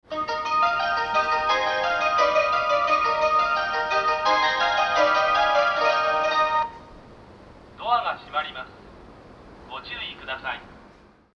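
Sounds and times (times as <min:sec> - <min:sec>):
melody: 0:00.1 - 0:06.8.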